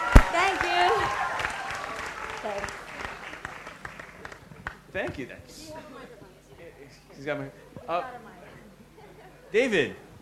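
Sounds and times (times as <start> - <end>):
talk-show audience applause in Singapore: 0.0 - 4.9
speech: 5.0 - 6.2, 6.9 - 8.4, 9.5 - 10.0.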